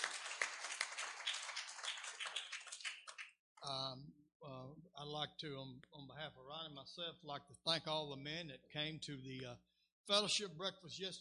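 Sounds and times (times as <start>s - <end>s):
room full of people clapping: 0.0s - 3.4s
speech: 3.6s - 11.1s.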